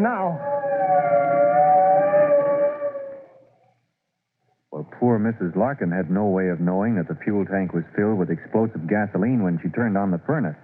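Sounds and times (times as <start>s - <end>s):
speech: 0.0s - 0.5s, 5.0s - 10.6s
fire truck siren wailing: 0.4s - 3.4s.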